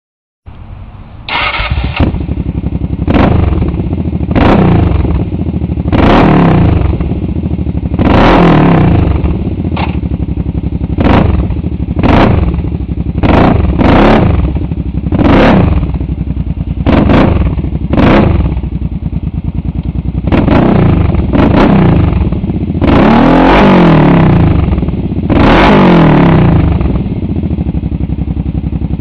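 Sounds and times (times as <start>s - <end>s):
Kawasaki KFX700 engine: 0.5s - 29.0s.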